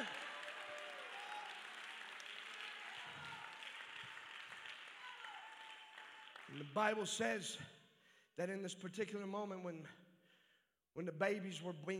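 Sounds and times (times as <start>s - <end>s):
audience clapping hands: 0.0s - 7.2s
speech: 6.5s - 7.8s, 8.4s - 10.0s, 11.0s - 11.9s.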